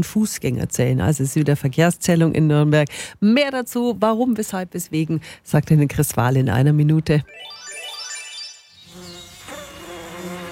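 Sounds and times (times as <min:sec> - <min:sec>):
speech: 0:00.0 - 0:07.6
lower-pitched buzzing: 0:07.7 - 0:10.4
mosquito whine: 0:08.6 - 0:10.4.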